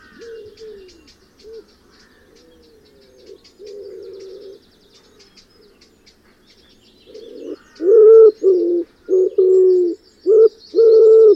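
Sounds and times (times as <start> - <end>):
wood pigeon cooing: 0.0 - 4.6, 7.1 - 11.3.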